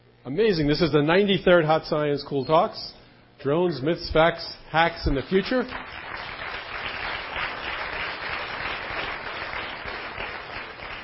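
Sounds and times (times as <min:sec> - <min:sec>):
speech: 0:00.2 - 0:06.0
audience applause: 0:05.6 - 0:11.0.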